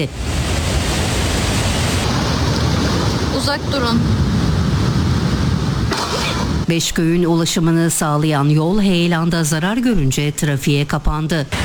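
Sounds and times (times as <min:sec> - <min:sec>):
speech: 0:00.0 - 0:00.3, 0:03.3 - 0:04.3, 0:06.1 - 0:11.6
flooded Camili Creek rushing after heavy rain in Borçka, Artvin: 0:00.0 - 0:06.7.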